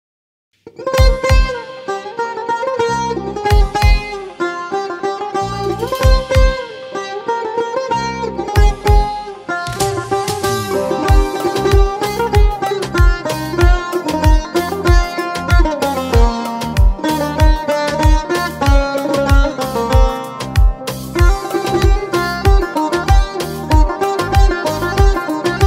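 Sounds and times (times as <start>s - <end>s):
instrumental version with tar: 0.6s - 25.6s.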